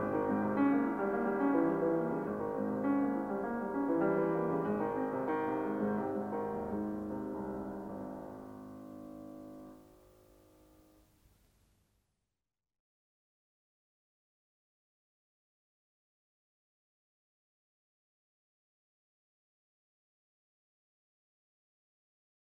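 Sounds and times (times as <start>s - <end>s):
piano sonata in A flat major: 0.0s - 11.2s.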